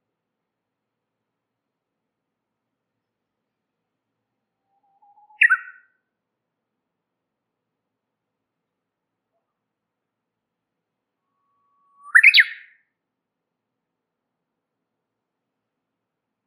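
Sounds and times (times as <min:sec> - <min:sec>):
warbler chirping and twittering: 0:05.0 - 0:05.8, 0:11.9 - 0:12.7.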